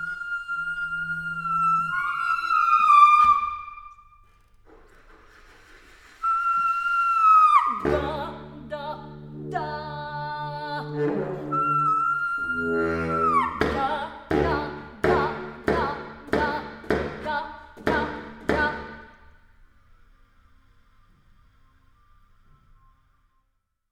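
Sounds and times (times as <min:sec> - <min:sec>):
monophonic music: 0:00.0 - 0:04.6, 0:06.2 - 0:19.6.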